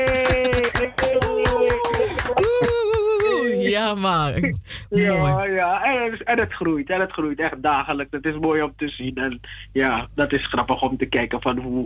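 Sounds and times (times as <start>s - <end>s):
applause: 0.0s - 3.4s
speech: 3.9s - 11.8s.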